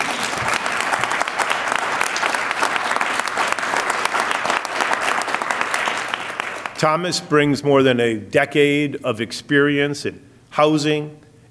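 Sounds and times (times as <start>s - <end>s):
applause: 0.0s - 6.8s
speech: 6.8s - 11.2s.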